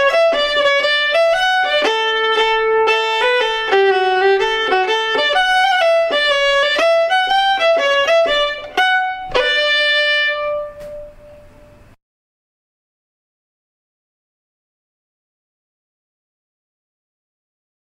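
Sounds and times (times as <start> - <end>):
slow schottische: 0.0 - 12.0.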